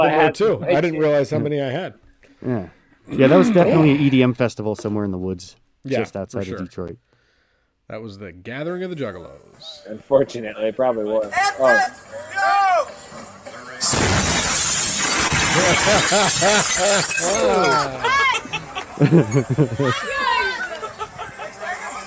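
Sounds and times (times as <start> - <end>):
speech: 0.0 - 7.0, 7.9 - 12.6, 15.6 - 20.2
explosion shockwave shattering windows: 13.8 - 17.3
laughter: 15.3 - 22.0.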